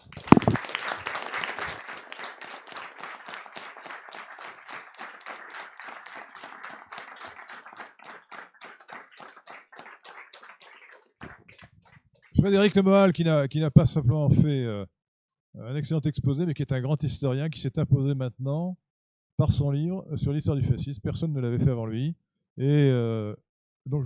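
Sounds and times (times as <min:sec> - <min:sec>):
audience applauding loudly: 0:00.0 - 0:12.9
speech: 0:12.4 - 0:15.0, 0:15.6 - 0:18.8, 0:19.4 - 0:24.0.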